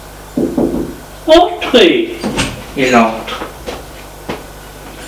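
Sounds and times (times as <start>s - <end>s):
knocking on a bedroom door: 0.4s - 1.0s
speech: 1.3s - 3.5s.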